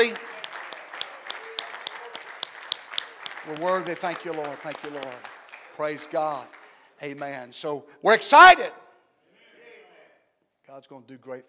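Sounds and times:
audience clapping hands: 0:00.0 - 0:07.3
speech: 0:03.4 - 0:08.8, 0:10.7 - 0:11.4.

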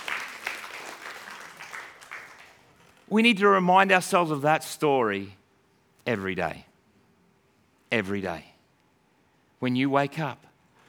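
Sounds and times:
audience applause: 0:00.0 - 0:02.9
speech: 0:03.1 - 0:05.4, 0:06.1 - 0:06.7, 0:07.9 - 0:08.5, 0:09.6 - 0:10.5.

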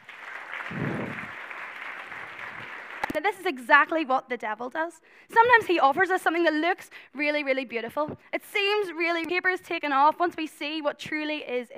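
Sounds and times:
audience clapping: 0:00.0 - 0:03.5
speech: 0:03.2 - 0:11.7.

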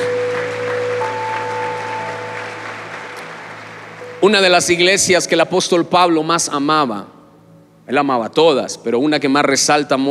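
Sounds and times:
audience applause: 0:00.0 - 0:04.8
speech: 0:04.2 - 0:07.2, 0:07.9 - 0:10.0.

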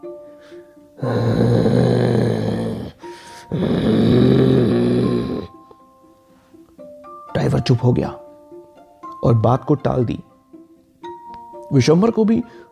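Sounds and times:
speech: 0:00.4 - 0:02.5, 0:03.5 - 0:05.1, 0:07.6 - 0:08.2, 0:09.3 - 0:10.3, 0:11.7 - 0:12.7
man growling like an animal: 0:01.0 - 0:05.5.

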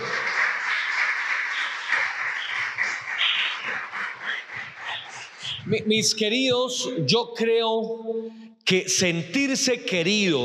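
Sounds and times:
crowd applause: 0:00.0 - 0:05.6
speech: 0:05.7 - 0:10.4.

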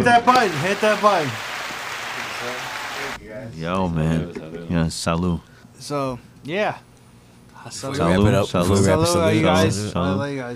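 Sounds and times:
speech: 0:00.0 - 0:01.5, 0:02.4 - 0:06.9, 0:07.6 - 0:10.5
applause sound effect from button: 0:00.3 - 0:03.2.

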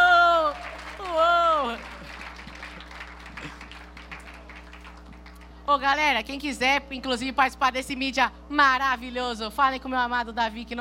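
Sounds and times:
audience applauding: 0:00.0 - 0:05.6
speech: 0:05.7 - 0:10.8.

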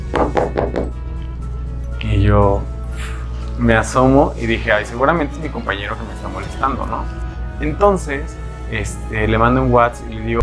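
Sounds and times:
knocking on a hotel room door: 0:00.1 - 0:01.0
speech: 0:02.3 - 0:02.7, 0:03.6 - 0:10.4.

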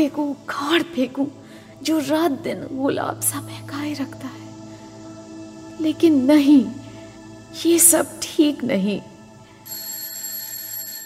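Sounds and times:
speech: 0:00.0 - 0:04.4, 0:05.8 - 0:06.8, 0:07.5 - 0:09.1
doorbell ringing: 0:09.7 - 0:11.0.

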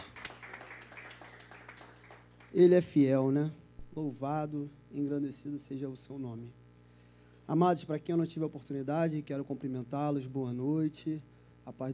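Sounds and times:
crowd applauding: 0:00.0 - 0:02.7
speech: 0:02.5 - 0:06.6, 0:07.5 - 0:11.9.

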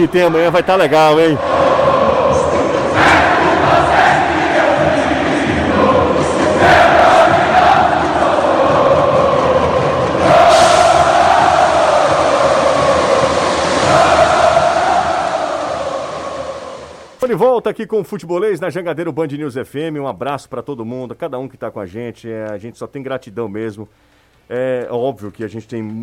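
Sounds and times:
speech: 0:00.0 - 0:01.7, 0:17.3 - 0:26.0
football fans singing loudly in stadium: 0:00.0 - 0:17.2.

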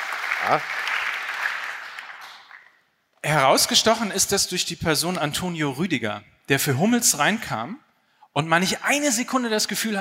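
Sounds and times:
audience applause: 0:00.0 - 0:02.8
speech: 0:00.4 - 0:00.8, 0:03.3 - 0:07.8, 0:08.4 - 0:09.9.

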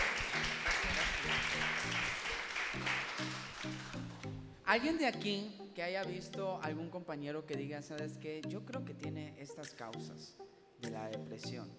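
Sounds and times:
audience applause: 0:00.0 - 0:04.2
speech: 0:04.7 - 0:11.7.

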